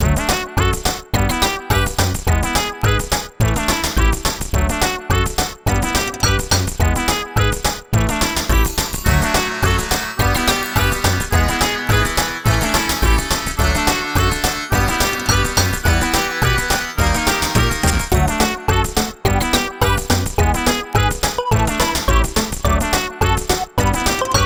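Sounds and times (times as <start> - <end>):
Chinese-style city music: 0.0 - 24.4.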